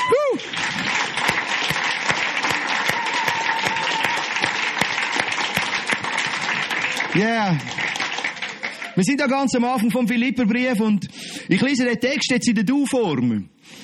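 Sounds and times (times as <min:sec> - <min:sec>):
audience applause: 0:00.0 - 0:09.5
speech: 0:07.2 - 0:07.8, 0:09.0 - 0:13.5.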